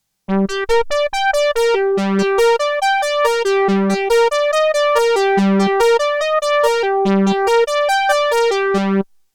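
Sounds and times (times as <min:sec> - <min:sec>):
Marion Systems MSR2 polysaw synthesizer: 0:00.3 - 0:09.0.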